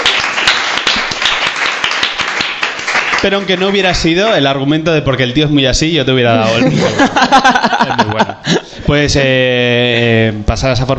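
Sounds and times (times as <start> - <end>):
small group applauding: 0.0 - 4.5
speech: 3.2 - 10.9
laughter: 6.4 - 8.9.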